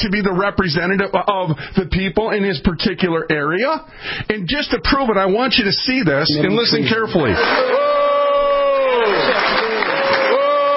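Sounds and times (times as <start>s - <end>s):
speech: 0.0s - 8.0s
crowd booing a politician: 7.2s - 10.7s.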